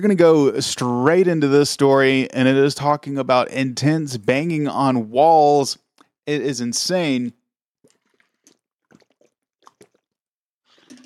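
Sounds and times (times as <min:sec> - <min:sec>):
speech: 0:00.0 - 0:07.4
person sipping a drink: 0:07.8 - 0:11.0.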